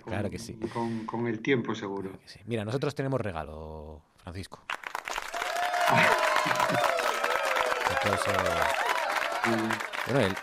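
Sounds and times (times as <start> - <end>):
speech: 0.0 - 4.8, 5.9 - 7.0, 8.0 - 8.8, 9.4 - 10.4
applause: 4.7 - 10.4
laughter: 5.7 - 10.4.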